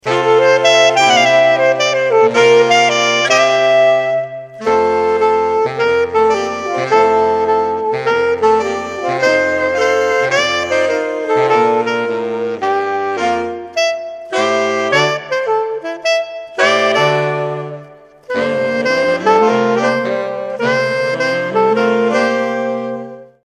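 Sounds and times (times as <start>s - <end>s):
saxophone quintet: 0.0s - 23.4s.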